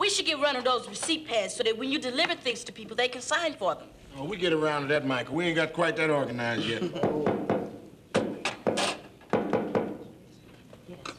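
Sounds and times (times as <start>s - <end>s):
speech: 0.2s - 7.5s
knocking on a door: 7.0s - 10.0s.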